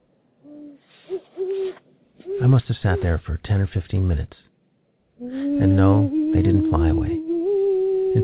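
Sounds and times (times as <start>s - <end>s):
faint hiss: 0.0s - 8.2s
owls hooting: 0.4s - 3.2s, 5.2s - 8.2s
speech: 2.5s - 4.5s, 5.6s - 7.2s.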